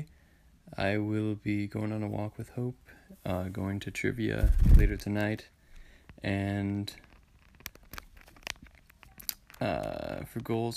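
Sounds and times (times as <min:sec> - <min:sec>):
speech: 0:00.8 - 0:05.6, 0:06.2 - 0:07.0, 0:09.6 - 0:10.7
pet tearing and chewing at a phone: 0:07.2 - 0:09.6.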